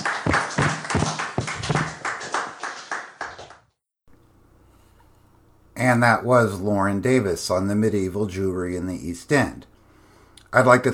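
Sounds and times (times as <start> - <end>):
audience applause: 0.0 - 3.7
speech: 5.8 - 9.7, 10.5 - 10.9.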